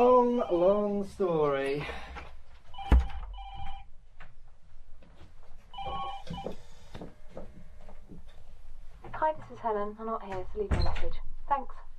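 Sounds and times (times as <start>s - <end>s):
speech: 0.0s - 2.1s, 9.2s - 11.8s
telephone ringing: 2.7s - 3.9s, 5.7s - 6.6s.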